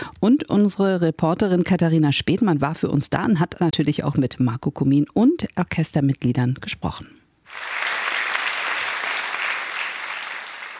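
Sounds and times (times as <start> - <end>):
speech: 0.2 - 7.8
polite concert audience applause: 7.5 - 10.7.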